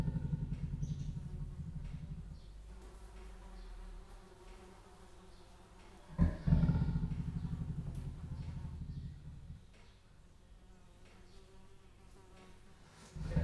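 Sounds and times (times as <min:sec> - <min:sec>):
captive leopard snoring at a zoo in Jászberény: 0:00.0 - 0:04.0, 0:06.0 - 0:10.0, 0:12.9 - 0:13.4.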